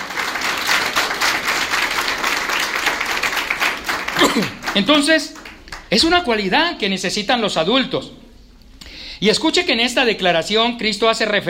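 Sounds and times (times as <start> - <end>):
audience applause: 0.0 - 6.0
speech: 4.4 - 8.2, 9.2 - 11.4.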